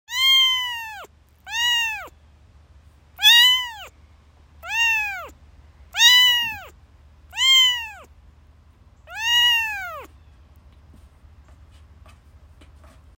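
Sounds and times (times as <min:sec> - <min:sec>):
domestic kitten mewing: 0:00.1 - 0:02.1, 0:03.2 - 0:03.9, 0:04.6 - 0:05.4, 0:06.0 - 0:08.1, 0:09.1 - 0:10.1
low background hum: 0:00.1 - 0:13.1.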